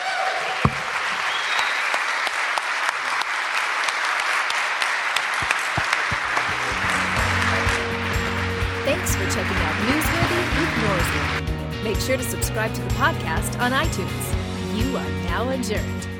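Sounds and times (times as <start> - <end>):
crowd applause: 0.0 - 11.5
speech: 11.0 - 16.1.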